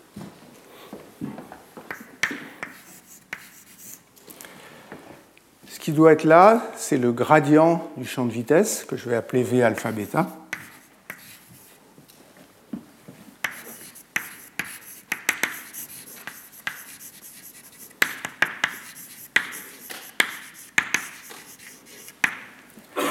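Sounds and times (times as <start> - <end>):
writing taps and scratchy strokes during a lecture: 1.9 - 4.0, 9.8 - 11.8, 13.4 - 22.5
speech: 5.8 - 10.4.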